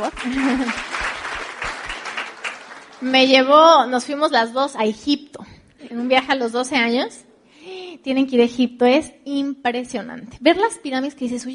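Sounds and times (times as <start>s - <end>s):
speech: 0.0s - 1.0s, 3.0s - 5.3s, 5.9s - 7.2s, 8.0s - 11.5s
laughter: 0.0s - 1.3s
applause: 0.0s - 3.3s.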